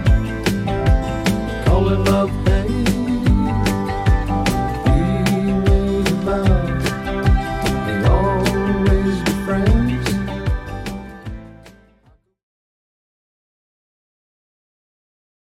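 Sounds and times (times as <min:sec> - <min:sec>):
70s drum beat at 150bpm: 0:00.0 - 0:11.5.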